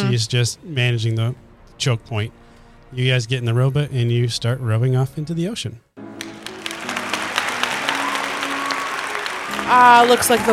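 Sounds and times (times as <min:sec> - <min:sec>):
speech: 0:00.0 - 0:05.8, 0:09.7 - 0:10.5
crowd applauding in a busy indoor room: 0:06.0 - 0:10.5.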